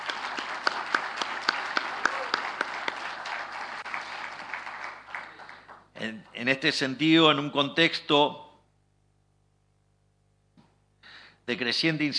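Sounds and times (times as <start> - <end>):
audience applause: 0.0 - 6.4
speech: 6.0 - 8.4, 11.5 - 12.1.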